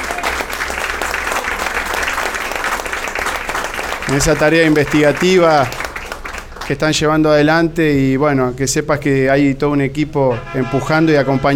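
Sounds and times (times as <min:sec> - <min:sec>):
audience applause: 0:00.0 - 0:07.0
speech: 0:04.1 - 0:05.8, 0:06.7 - 0:11.5.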